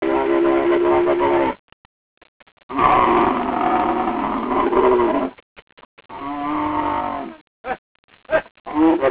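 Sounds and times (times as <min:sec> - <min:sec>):
camel groaning bellow: 0:00.0 - 0:01.6, 0:02.7 - 0:05.4, 0:06.1 - 0:07.4, 0:08.7 - 0:09.1.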